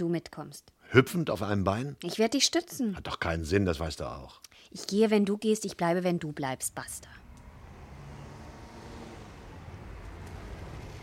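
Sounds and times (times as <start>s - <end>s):
speech: 0.0s - 7.2s
car approaching: 6.8s - 11.0s.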